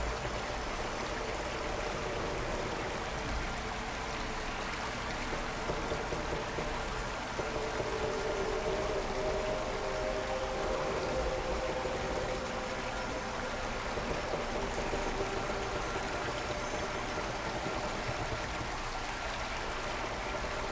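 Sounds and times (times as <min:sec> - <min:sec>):
ambience: 0:00.0 - 0:20.7.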